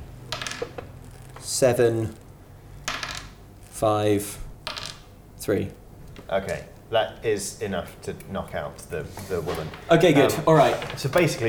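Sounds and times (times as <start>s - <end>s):
dice tumbling across a hard surface: 0.3s - 0.9s, 2.8s - 3.4s, 4.6s - 5.1s
speech: 1.5s - 2.2s, 3.8s - 4.4s, 5.4s - 11.4s.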